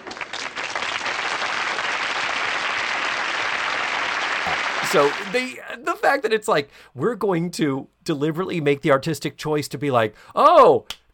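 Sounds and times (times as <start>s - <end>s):
sitcom canned applause clap track: 0.0s - 5.6s
speech: 4.9s - 11.0s.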